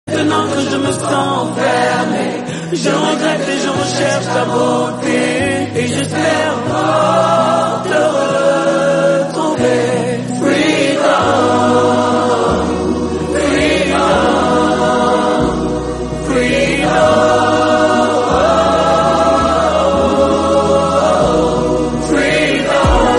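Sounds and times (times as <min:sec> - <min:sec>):
soprano singing: 0:00.1 - 0:23.1.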